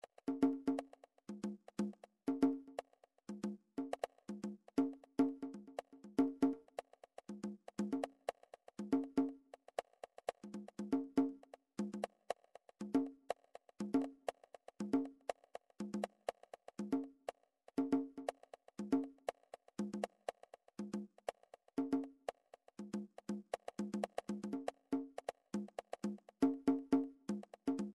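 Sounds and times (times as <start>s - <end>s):
MIDI drums and percussion: 0.0s - 27.9s.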